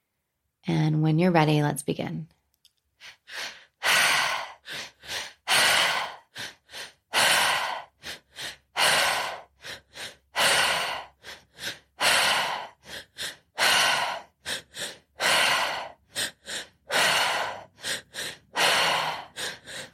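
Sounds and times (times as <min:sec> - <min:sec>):
speech: 0:00.7 - 0:02.4
deep rhythmic breathing in and out: 0:03.0 - 0:19.9.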